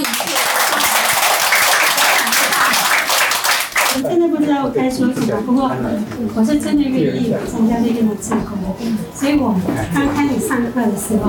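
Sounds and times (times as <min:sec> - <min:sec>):
audience applause: 0:00.0 - 0:04.0
speech: 0:04.0 - 0:11.2.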